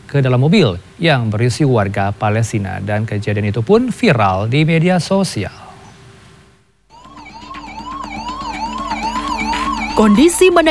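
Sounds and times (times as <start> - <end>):
speech: 0.1 - 5.6, 10.0 - 10.7
ambulance siren: 6.9 - 10.7.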